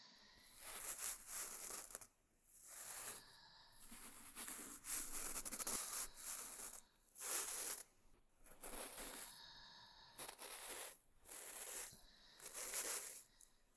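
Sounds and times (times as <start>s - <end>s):
ear cleaning recorded with binaural microphone: 0.5s - 3.2s, 3.9s - 7.9s, 8.5s - 9.4s, 10.2s - 13.5s.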